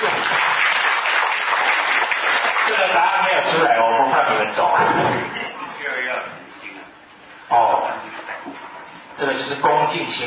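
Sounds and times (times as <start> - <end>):
audience applause: 0.0 - 3.4
speech: 2.9 - 5.4, 9.2 - 10.2.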